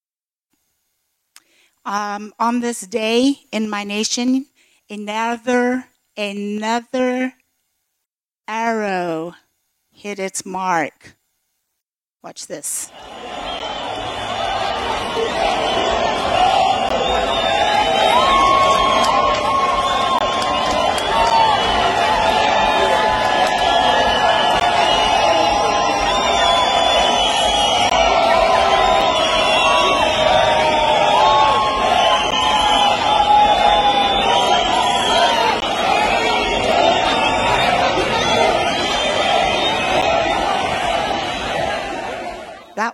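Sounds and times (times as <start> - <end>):
speech: 1.8 - 7.4, 8.5 - 9.4, 10.0 - 11.2, 12.2 - 13.8
crowd cheering and rejoicing in streets: 12.9 - 42.8.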